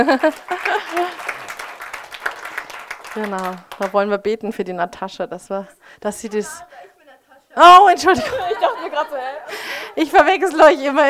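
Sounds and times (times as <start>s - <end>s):
speech: 0.0s - 1.0s, 3.2s - 6.9s, 7.6s - 11.0s
laughter: 0.0s - 1.5s, 8.0s - 10.1s
audience applause: 0.0s - 4.0s.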